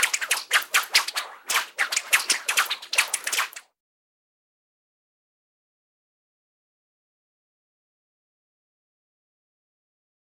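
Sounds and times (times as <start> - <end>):
whip swishing: 0.0 - 3.7.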